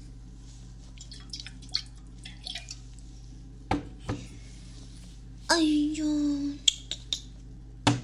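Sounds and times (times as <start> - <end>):
low steady hum: 0.0 - 8.0
rubbing alcohol dripping onto a bleeding wound: 0.9 - 3.0
speech: 5.6 - 6.5.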